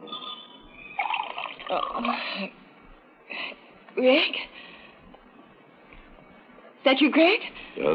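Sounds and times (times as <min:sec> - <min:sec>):
drink pouring into a glass: 0:01.0 - 0:02.1
speech: 0:06.9 - 0:07.9.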